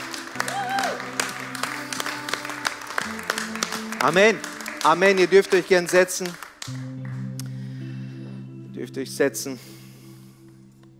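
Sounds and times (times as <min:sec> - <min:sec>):
audience applause: 0:00.0 - 0:07.3
sustained organ or keyboard chord: 0:00.0 - 0:10.9
speech: 0:04.0 - 0:06.9, 0:08.8 - 0:09.8.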